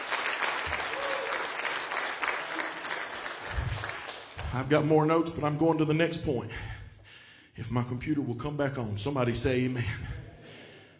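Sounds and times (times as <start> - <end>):
large group applause: 0.0 - 4.6
speech: 4.5 - 6.8, 7.6 - 10.2.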